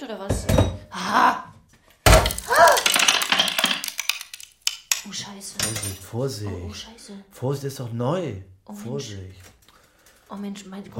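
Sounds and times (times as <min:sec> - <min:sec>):
speech: 0:00.0 - 0:01.4, 0:05.4 - 0:09.5, 0:10.3 - 0:10.9
new dishes knocked together, nearly breaking: 0:00.3 - 0:00.9, 0:02.1 - 0:06.0
people reacting: 0:02.4 - 0:03.2.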